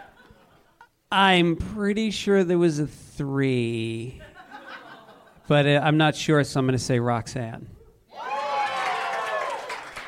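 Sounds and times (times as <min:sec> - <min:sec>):
laughter: 0:00.0 - 0:00.9, 0:04.2 - 0:05.4
speech: 0:01.1 - 0:04.3, 0:05.5 - 0:07.8
studio audience cheering on a television game show: 0:08.1 - 0:10.0.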